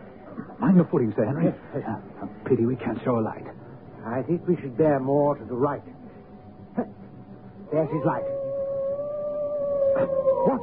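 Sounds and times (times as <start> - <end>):
speech: 0.7 - 6.0, 6.8 - 7.0, 7.7 - 8.4, 10.0 - 10.6
hound howling on the moor in a radio drama: 7.7 - 10.6.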